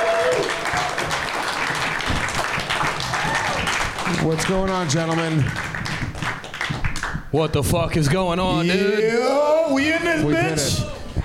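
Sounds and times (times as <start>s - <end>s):
applause: 0.0s - 7.3s
speech: 4.2s - 5.7s, 7.3s - 10.9s.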